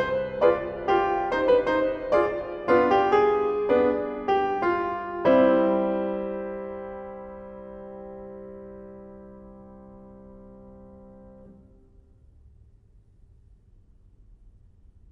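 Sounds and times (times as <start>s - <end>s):
baroque fugue in C minor: 0.0s - 7.4s.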